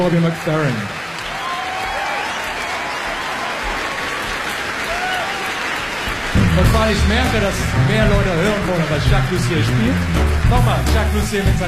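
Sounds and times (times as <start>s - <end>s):
speech: 0.0s - 1.0s, 6.6s - 11.6s
audience applause: 0.0s - 11.6s.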